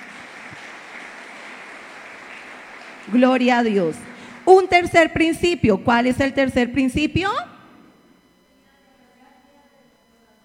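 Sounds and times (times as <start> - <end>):
audience applause: 0.0 - 4.5
speech: 3.1 - 7.5.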